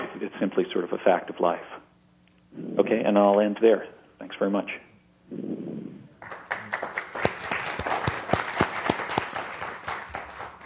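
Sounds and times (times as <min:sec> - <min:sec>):
speech: 0:00.2 - 0:01.9, 0:02.5 - 0:05.9
audience applause: 0:06.2 - 0:10.6.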